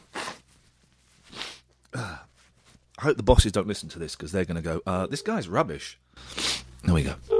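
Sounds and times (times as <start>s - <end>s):
nose blowing: 0.0s - 0.5s, 1.3s - 1.7s, 6.2s - 6.7s
speech: 3.0s - 7.3s.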